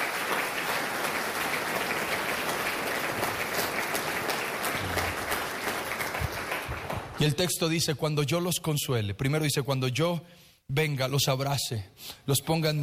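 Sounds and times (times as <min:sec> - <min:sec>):
audience applause: 0:00.0 - 0:07.4
speech: 0:07.2 - 0:12.8.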